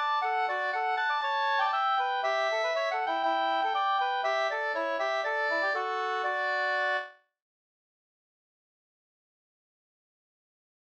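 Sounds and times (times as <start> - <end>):
polka: 0.0 - 7.2.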